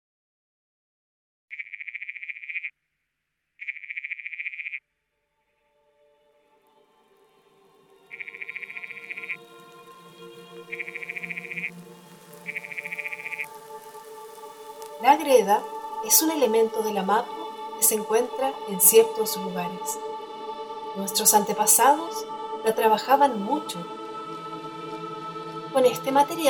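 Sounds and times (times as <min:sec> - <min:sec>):
frog calling buzzy pulsed trills: 0:01.5 - 0:02.7, 0:03.6 - 0:04.8, 0:08.1 - 0:09.4, 0:10.7 - 0:11.7, 0:12.3 - 0:13.5
speech: 0:15.2 - 0:20.1, 0:21.0 - 0:24.0, 0:25.8 - 0:26.4.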